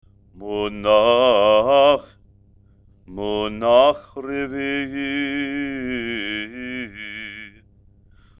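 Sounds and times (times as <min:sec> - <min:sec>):
person chanting haftarah with trope: 0:00.4 - 0:02.2, 0:03.1 - 0:07.6.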